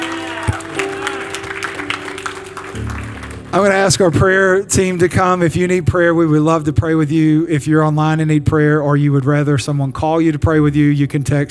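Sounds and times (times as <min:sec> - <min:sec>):
audience clapping and cheering: 0:00.0 - 0:04.5
speech: 0:03.6 - 0:11.4.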